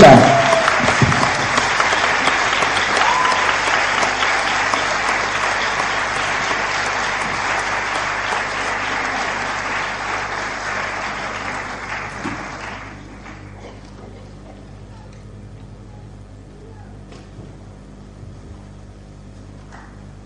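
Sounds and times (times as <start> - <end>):
audience applause welcoming a singer: 0.0 - 14.7.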